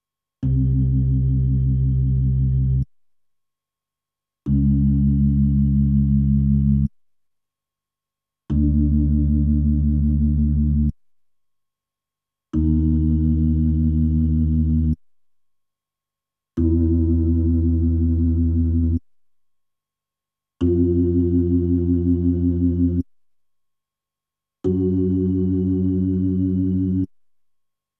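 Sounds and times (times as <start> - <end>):
Hammond B3 organ: 0.4 - 2.8, 4.5 - 6.9, 8.5 - 10.9, 12.6 - 15.0, 16.6 - 19.0, 20.6 - 23.0, 24.7 - 27.1.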